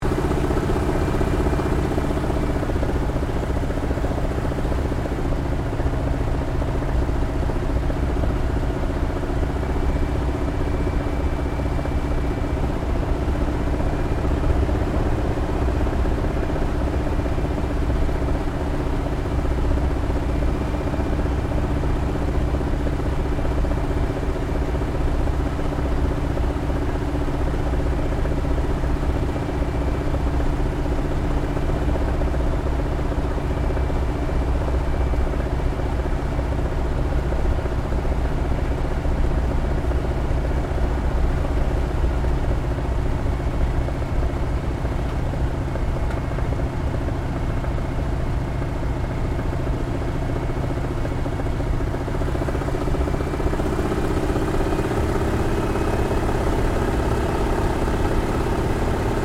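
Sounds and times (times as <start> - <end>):
CAC Wirraway aircraft landing heard from interior: 0.0 - 59.2.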